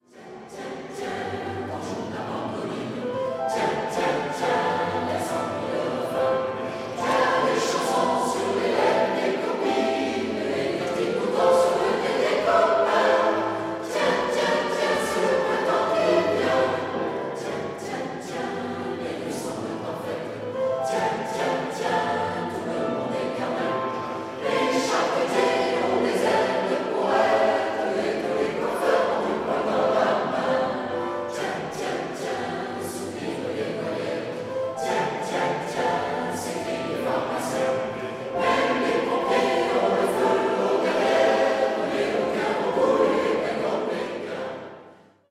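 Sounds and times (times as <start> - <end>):
chorale: 0.0 - 45.2.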